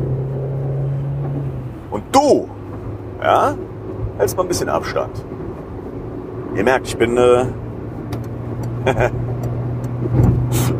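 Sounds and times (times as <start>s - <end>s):
car engine and road hum driving on the Autobahn: 0.0s - 10.7s
speech: 2.2s - 2.6s, 3.2s - 5.4s, 6.5s - 7.6s, 8.8s - 9.2s.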